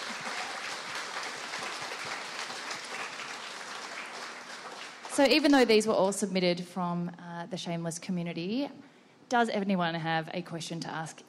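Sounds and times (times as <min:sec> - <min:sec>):
audience clapping: 0:00.0 - 0:05.8
speech: 0:05.2 - 0:11.2.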